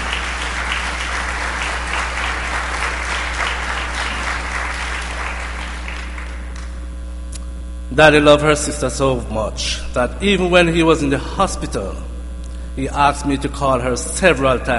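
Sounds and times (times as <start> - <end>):
audience applause: 0.0 - 6.8
speech: 8.0 - 12.1, 12.8 - 14.7.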